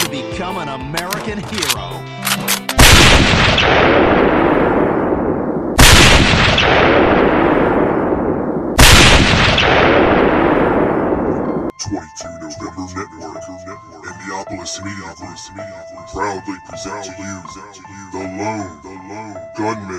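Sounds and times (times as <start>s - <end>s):
speech: 0.1s - 2.7s, 14.6s - 19.9s
gunshots from a gun on a grassy knoll: 1.6s - 11.4s.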